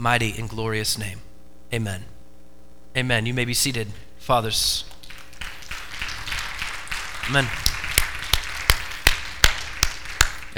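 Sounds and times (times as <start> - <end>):
speech: 0.0 - 2.1, 2.9 - 4.9, 7.3 - 7.6
light polite clapping: 4.9 - 10.5.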